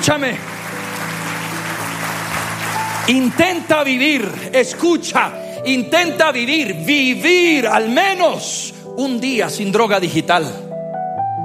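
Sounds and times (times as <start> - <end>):
audience applause: 0.0 - 4.4
speech: 0.1 - 0.6, 3.1 - 10.7.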